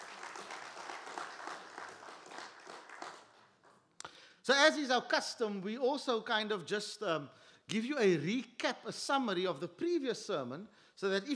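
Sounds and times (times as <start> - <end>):
audience applause: 0.0 - 3.8
speech: 4.5 - 11.3.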